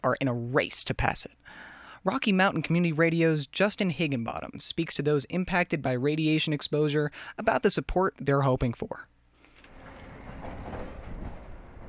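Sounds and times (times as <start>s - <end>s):
speech: 0.0s - 9.1s
trucks hauling material from the Moab Uranium Mill Tailings Remedial Action Project: 9.6s - 11.8s.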